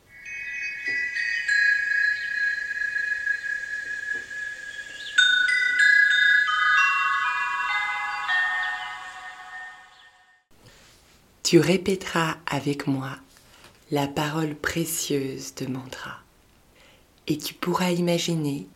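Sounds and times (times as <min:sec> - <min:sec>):
magic chime: 0:00.0 - 0:10.4
speech: 0:11.5 - 0:13.2, 0:13.9 - 0:16.2, 0:17.3 - 0:18.7.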